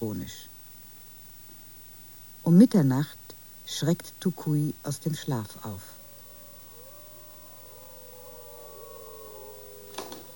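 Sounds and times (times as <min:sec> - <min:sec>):
speech: 0:00.0 - 0:00.5, 0:02.4 - 0:06.0
people on rooftops howling at the full moon: 0:05.4 - 0:10.3.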